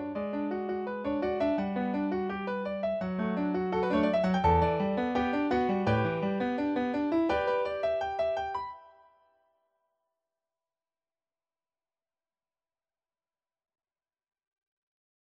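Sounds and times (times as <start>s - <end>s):
piano: 0.0s - 9.2s.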